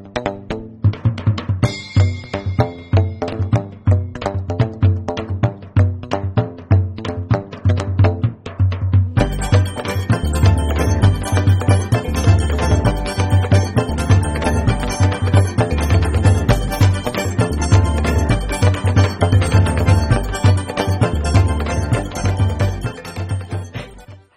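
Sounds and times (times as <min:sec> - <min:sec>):
donkey beat: 0:00.2 - 0:24.3.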